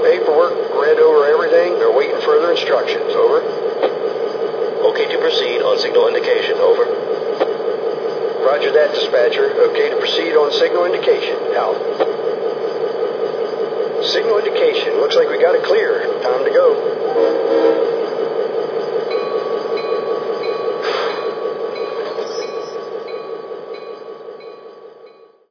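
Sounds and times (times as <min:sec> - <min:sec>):
GP38-2 locomotive: 0:00.0 - 0:25.4.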